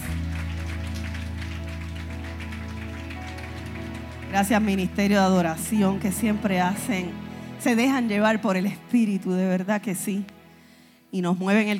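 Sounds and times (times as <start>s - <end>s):
applause: 0.0s - 6.9s
speech: 4.3s - 10.4s, 11.1s - 11.7s.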